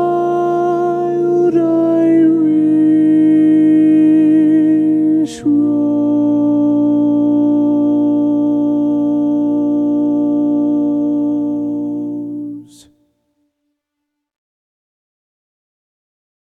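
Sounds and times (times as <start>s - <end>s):
tenor singing: 0.0s - 13.0s.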